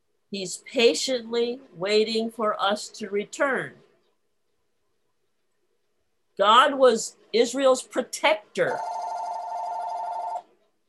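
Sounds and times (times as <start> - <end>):
speech: 0.3 - 3.8, 6.4 - 9.0
phone ringing: 8.7 - 10.6.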